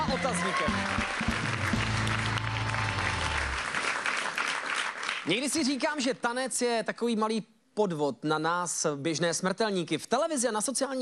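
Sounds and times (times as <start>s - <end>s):
audience applause: 0.0s - 5.6s
speech: 0.2s - 1.2s, 5.2s - 11.0s.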